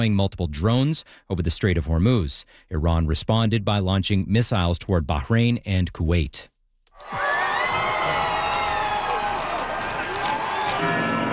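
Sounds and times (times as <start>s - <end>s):
speech: 0.0s - 7.3s
crowds in Madrid cheering Pope Leo at the royal palace: 7.0s - 11.3s.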